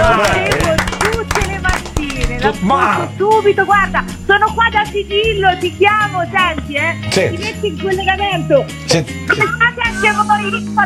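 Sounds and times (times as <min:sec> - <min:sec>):
scattered hand claps: 0:00.0 - 0:02.7
several people talking and calling out: 0:00.0 - 0:10.8
speech: 0:02.4 - 0:10.8.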